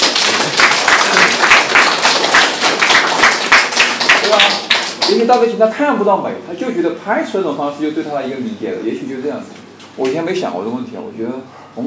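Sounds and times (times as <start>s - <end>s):
applause: 0.0s - 5.5s
speech: 4.3s - 11.8s.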